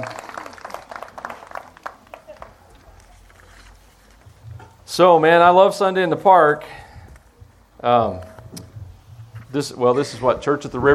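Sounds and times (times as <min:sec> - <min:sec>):
audience applauding for the worship team: 0:00.0 - 0:02.7
speech: 0:04.9 - 0:06.8, 0:07.8 - 0:08.3, 0:09.5 - 0:10.9.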